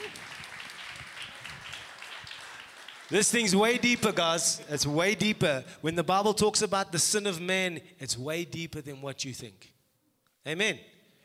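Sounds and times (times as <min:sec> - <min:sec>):
audience applause: 0:00.0 - 0:04.2
speech: 0:03.1 - 0:09.7, 0:10.4 - 0:10.9.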